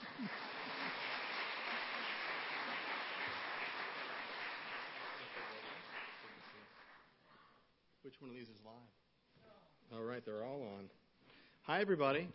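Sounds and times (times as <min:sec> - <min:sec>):
audience applause: 0:00.0 - 0:07.1
speech: 0:08.1 - 0:09.0, 0:09.9 - 0:11.0, 0:11.6 - 0:12.3.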